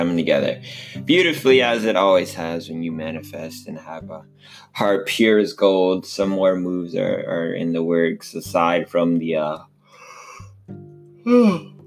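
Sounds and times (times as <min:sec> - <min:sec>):
speech: 0:00.1 - 0:09.7, 0:10.7 - 0:11.7
person yawning: 0:10.0 - 0:10.5, 0:11.2 - 0:11.8.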